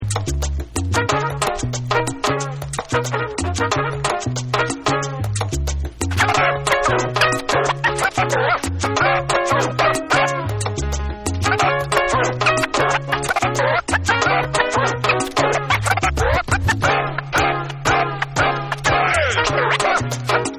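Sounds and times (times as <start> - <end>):
turntable scratching over salsa: 0.0 - 20.5.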